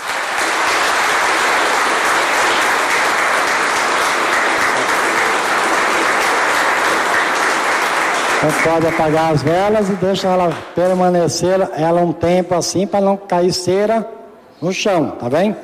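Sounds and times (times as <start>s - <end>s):
applause: 0.0s - 11.2s
speech: 8.4s - 15.6s.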